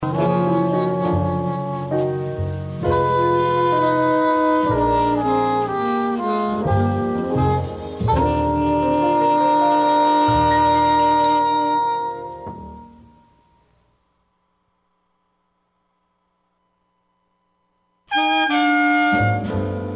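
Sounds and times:
jazz music: 0:00.0 - 0:13.7, 0:18.1 - 0:19.9.

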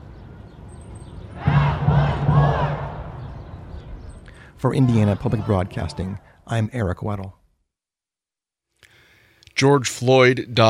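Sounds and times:
crowd chanting a protest slogan: 0:01.4 - 0:03.5, 0:04.6 - 0:06.4
speech: 0:04.6 - 0:07.4, 0:09.6 - 0:10.6.

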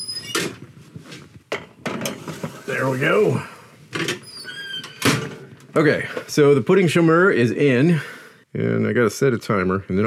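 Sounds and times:
oven door squeak: 0:00.0 - 0:00.6, 0:04.1 - 0:05.4
speech: 0:02.7 - 0:03.6, 0:05.8 - 0:10.0.

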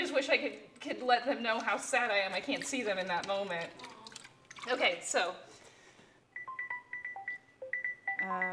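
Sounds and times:
speech: 0:00.2 - 0:03.9, 0:04.6 - 0:05.5, 0:08.2 - 0:08.5
kitchen timer beeping: 0:06.4 - 0:08.5.

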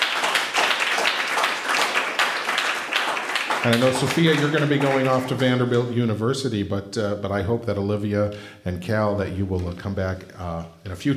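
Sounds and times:
crowd applauding: 0:00.0 - 0:05.9
speech: 0:03.6 - 0:11.1.

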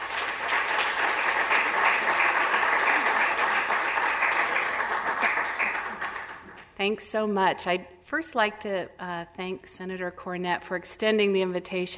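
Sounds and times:
evening audience at a Douglas County mental health event applauding a speaker: 0:00.0 - 0:06.8
speech: 0:06.8 - 0:11.9.

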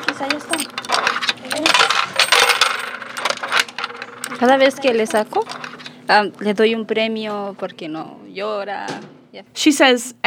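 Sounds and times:
coins dropping into a vending machine: 0:00.0 - 0:06.2
speech: 0:00.2 - 0:01.0, 0:04.4 - 0:10.2.

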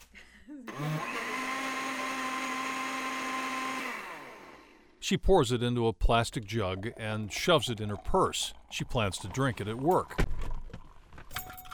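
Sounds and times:
blender making a smoothie: 0:00.7 - 0:05.0
speech: 0:05.1 - 0:10.3.

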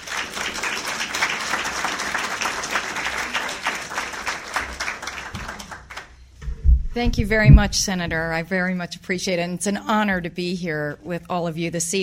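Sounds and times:
audience applauding a guest lecturer at a lecture on citizen diplomacy: 0:00.0 - 0:06.1
speech: 0:07.0 - 0:12.0.

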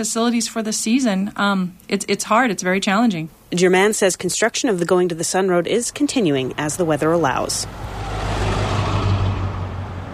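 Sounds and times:
speech: 0:00.0 - 0:08.2
cars pulling up and driving off at Glacier Park entrance: 0:05.6 - 0:10.1.

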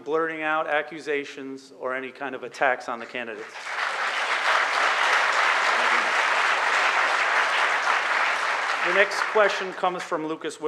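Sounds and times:
speech: 0:00.1 - 0:03.9, 0:08.9 - 0:10.6
audience clapping: 0:03.4 - 0:10.3
audience cheering: 0:04.3 - 0:09.8.

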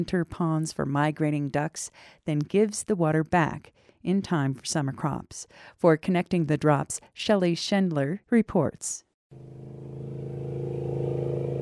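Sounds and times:
speech: 0:00.0 - 0:10.1
motorboat engine towing water skiers on a reservoir: 0:09.3 - 0:11.5.

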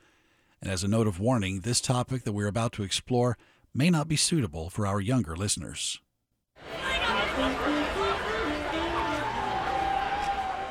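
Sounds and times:
speech: 0:00.6 - 0:06.0, 0:07.4 - 0:08.0
crowd chatter: 0:06.6 - 0:10.6.

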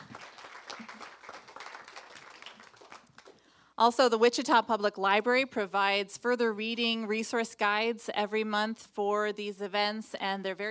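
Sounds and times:
audience round of applause: 0:00.0 - 0:03.4
speech: 0:03.8 - 0:10.6.

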